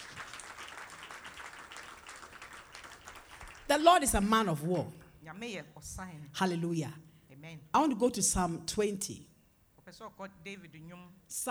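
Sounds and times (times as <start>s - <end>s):
audience clapping: 0.0s - 5.0s
speech: 3.7s - 9.3s, 9.9s - 11.4s.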